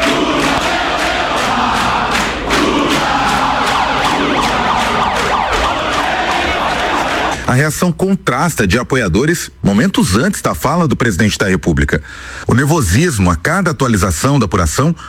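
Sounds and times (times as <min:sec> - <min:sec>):
crowd of supporters shouting and chanting: 0:00.0 - 0:07.5
shrill siren-like tones: 0:03.0 - 0:07.4
speech: 0:07.5 - 0:15.0.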